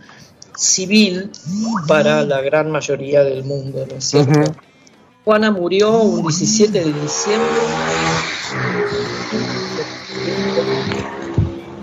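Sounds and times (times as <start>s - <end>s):
speech: 0.6s - 11.1s
motorcycle passing by outside in a residential neighbourhood: 6.2s - 11.8s.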